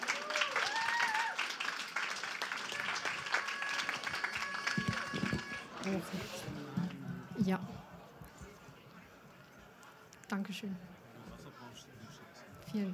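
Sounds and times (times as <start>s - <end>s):
audience applause: 0.0s - 6.7s
speech: 5.9s - 6.5s, 7.4s - 7.8s, 10.3s - 11.0s, 12.7s - 12.9s.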